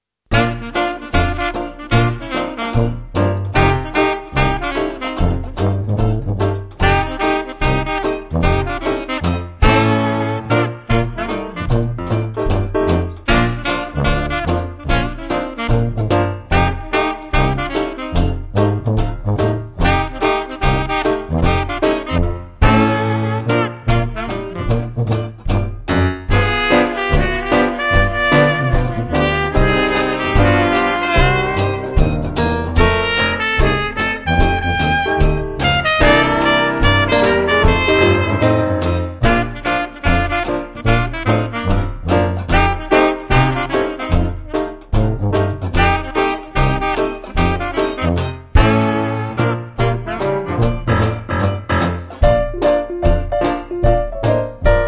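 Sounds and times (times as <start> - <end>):
West Coast swing music: 0.3 - 54.8.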